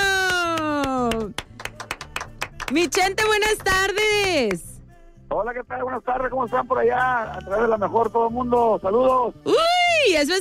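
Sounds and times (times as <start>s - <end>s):
applause: 0.0s - 4.7s
speech: 2.7s - 4.7s, 5.3s - 10.3s.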